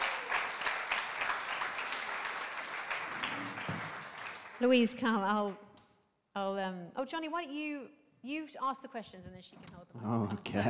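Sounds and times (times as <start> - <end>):
crowd applauding: 0.0 - 5.1
speech: 4.6 - 5.6, 6.4 - 10.6.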